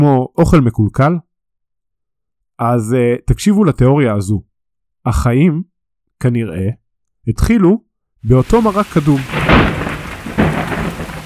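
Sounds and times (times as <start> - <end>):
speech: 0.0 - 1.3, 2.6 - 9.7
thunderclap from a lightning strike: 8.4 - 11.2.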